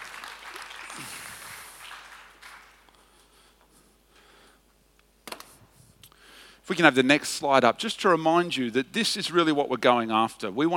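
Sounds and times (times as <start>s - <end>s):
audience applause: 0.0s - 2.9s
speech: 6.7s - 10.7s.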